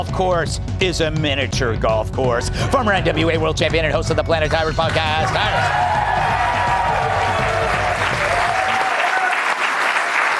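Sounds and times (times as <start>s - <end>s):
speech: 0.0s - 6.4s
crowd applauding: 4.4s - 10.3s
people cheering: 4.4s - 10.3s.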